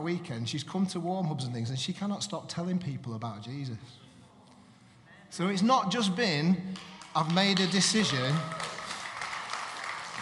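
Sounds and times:
speech: 0.0 - 4.0, 5.3 - 8.7
audience clapping: 6.7 - 10.1.

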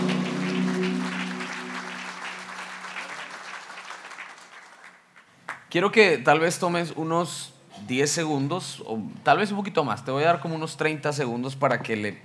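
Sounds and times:
applause: 0.0 - 5.7
speech: 5.7 - 12.2.

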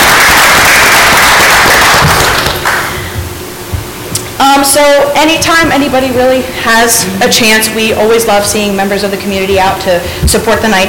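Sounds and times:
round of applause: 0.0 - 2.9
speech: 4.7 - 10.8.

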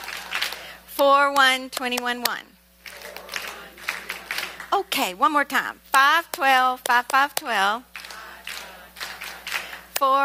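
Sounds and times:
church congregation hand claps: 0.0 - 0.7, 2.8 - 4.8, 6.3 - 10.1
speech: 1.0 - 2.5, 4.7 - 7.9, 10.0 - 10.2.

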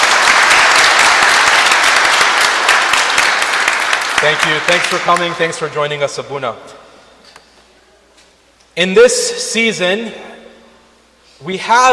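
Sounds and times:
church congregation applause welcoming a visiting priest: 0.0 - 5.7
speech: 4.2 - 6.8, 8.8 - 10.3, 11.4 - 11.9.

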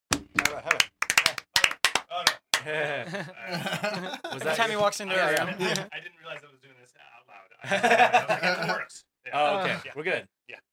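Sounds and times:
hand clap: 0.1 - 2.7, 5.3 - 5.9
laughter: 0.4 - 1.0, 2.6 - 6.0, 7.6 - 8.9
speech: 2.6 - 6.5, 7.6 - 10.6.

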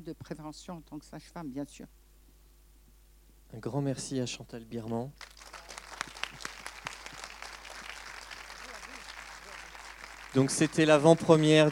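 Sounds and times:
speech: 0.0 - 2.0, 3.5 - 5.4, 10.3 - 11.7
audience applause: 5.2 - 11.7.

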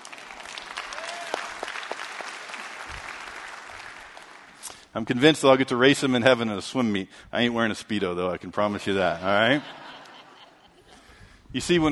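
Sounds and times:
crowd applause: 0.0 - 4.6
speech: 5.0 - 10.0, 11.5 - 11.9
laughter: 8.9 - 11.1.

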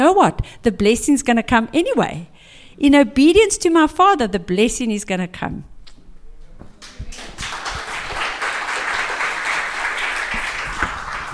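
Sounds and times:
speech: 0.1 - 5.7
audience applause: 6.8 - 11.3.

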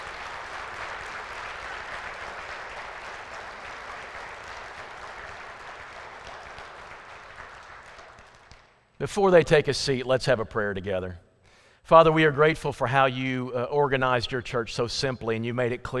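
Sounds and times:
audience applause: 0.0 - 8.7
speech: 9.0 - 11.3, 11.9 - 15.9.

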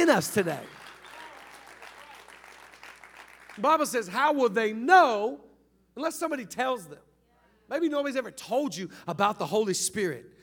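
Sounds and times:
speech: 0.0 - 0.8, 3.6 - 7.1, 7.7 - 10.4
audience clapping: 0.0 - 3.9.

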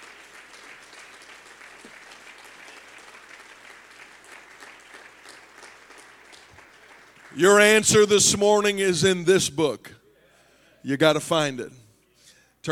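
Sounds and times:
audience clapping hands: 0.0 - 8.2
speech: 7.4 - 10.0, 10.8 - 11.8.

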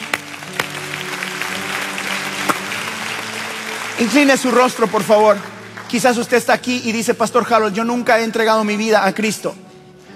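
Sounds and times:
audience applause: 0.0 - 6.6
speech: 4.0 - 9.6.

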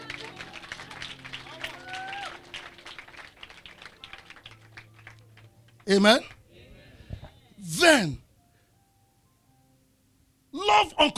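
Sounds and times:
audience clapping: 0.0 - 6.4
speech: 5.9 - 6.4, 7.8 - 8.2, 10.8 - 11.1.

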